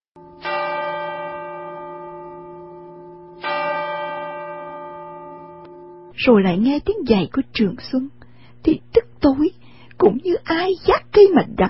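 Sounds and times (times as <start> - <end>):
clock outside striking seven o'clock: 0.2 - 6.1
speech: 6.2 - 11.6.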